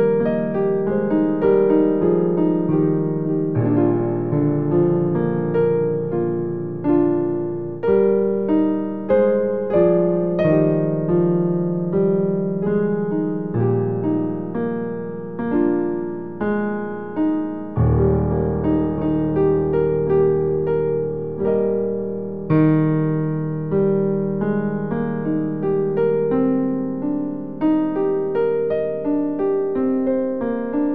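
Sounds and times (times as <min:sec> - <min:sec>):
hymn played on piano: 0:00.0 - 0:30.9.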